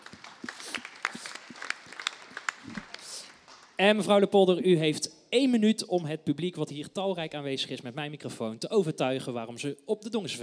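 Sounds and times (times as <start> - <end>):
audience applause: 0.0 - 3.8
speech: 3.8 - 10.4.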